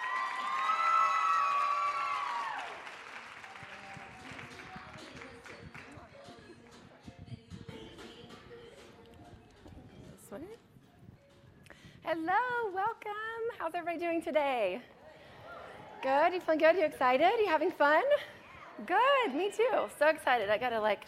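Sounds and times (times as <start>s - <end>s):
audience applauding and cheering a speaker coming on stage: 0.0s - 6.1s
speech: 12.1s - 15.0s, 16.0s - 21.0s.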